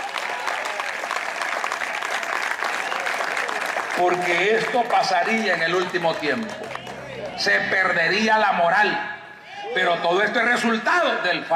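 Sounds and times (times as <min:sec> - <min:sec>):
audience applauding loudly: 0:00.0 - 0:08.2
speech: 0:04.0 - 0:09.1, 0:09.7 - 0:11.5.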